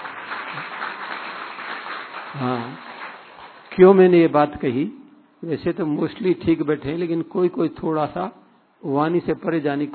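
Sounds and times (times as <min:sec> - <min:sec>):
audience clapping: 0:00.0 - 0:03.8
speech: 0:02.3 - 0:02.9, 0:03.8 - 0:09.9.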